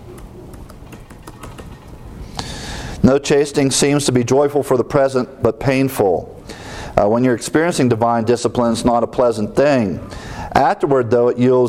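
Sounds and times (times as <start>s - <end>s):
typing on a computer keyboard: 0.1s - 2.0s
speech: 3.0s - 6.4s, 7.0s - 11.6s.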